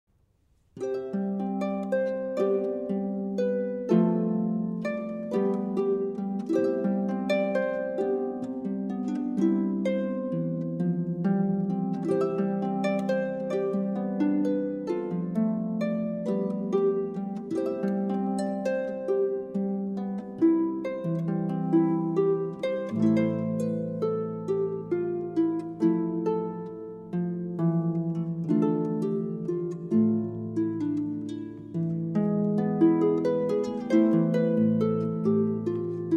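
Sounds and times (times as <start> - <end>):
harp: 0.5 - 36.1.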